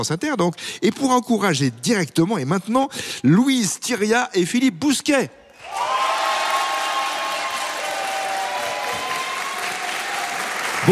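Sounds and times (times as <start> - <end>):
speech: 0.0 - 5.9
crowd applauding and cheering guests: 5.6 - 10.9.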